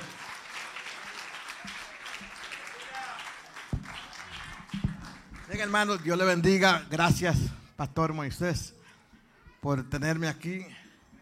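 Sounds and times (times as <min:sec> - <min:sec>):
audience applauding loudly: 0:00.0 - 0:06.4
speech: 0:05.5 - 0:08.8, 0:09.6 - 0:10.8.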